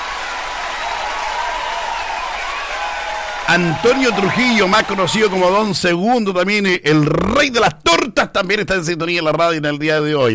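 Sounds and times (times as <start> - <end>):
applause: 0.0 - 6.0
speech: 3.5 - 10.3.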